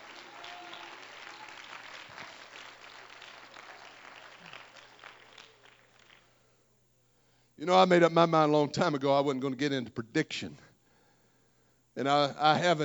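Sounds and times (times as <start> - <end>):
audience clapping hands: 0.0 - 6.4
speech: 7.6 - 10.6, 12.0 - 12.8.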